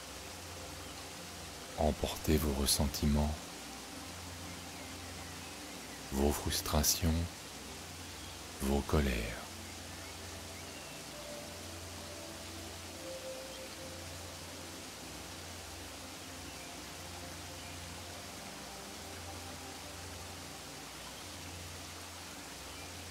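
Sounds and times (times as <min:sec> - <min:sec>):
waterfall rumbling: 0:00.0 - 0:23.0
speech: 0:01.8 - 0:03.4, 0:06.1 - 0:07.4, 0:08.6 - 0:09.4.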